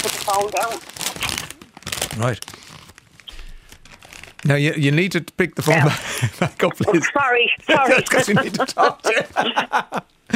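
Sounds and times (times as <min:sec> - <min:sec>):
plastic packet torn open and crinkled: 0:00.0 - 0:04.5
speech: 0:00.3 - 0:01.5, 0:02.2 - 0:02.6, 0:04.4 - 0:10.3
laughter: 0:05.7 - 0:10.3.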